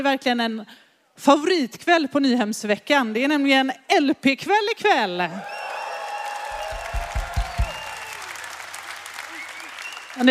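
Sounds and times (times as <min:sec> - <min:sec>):
speech: 0:00.0 - 0:05.6
audience applause: 0:05.4 - 0:10.2.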